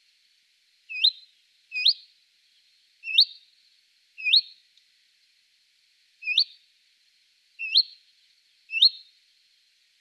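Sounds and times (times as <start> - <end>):
Marsh warbler song: 0.9 - 1.2, 3.0 - 3.4, 4.2 - 4.5, 6.2 - 6.5, 7.6 - 8.0, 8.7 - 9.1.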